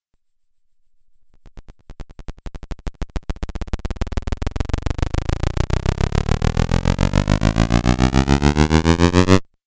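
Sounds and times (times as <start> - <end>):
rising video game sound: 4.2 - 9.4.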